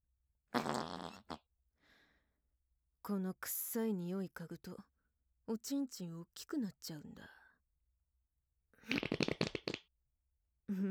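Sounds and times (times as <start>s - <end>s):
fart: 0.6s - 1.4s, 8.8s - 9.9s
speech: 3.1s - 4.9s, 5.5s - 7.4s, 8.8s - 9.2s, 10.7s - 10.9s.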